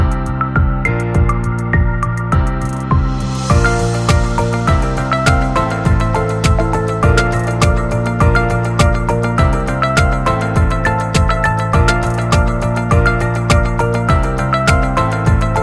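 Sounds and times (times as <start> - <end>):
corporate ambient music: 0.0 - 15.6.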